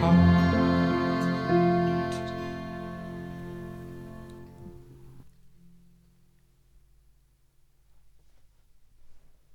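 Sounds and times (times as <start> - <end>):
instrumental mix: 0.0 - 5.3.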